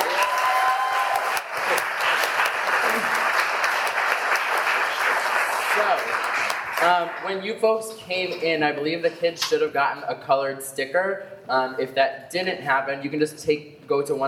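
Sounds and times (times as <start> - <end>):
audience applause: 0.0 - 7.2
speech: 6.8 - 14.2.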